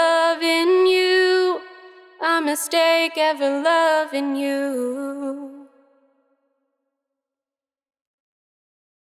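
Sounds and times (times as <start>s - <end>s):
wet main vocal a cappella in E major: 0.0s - 5.9s.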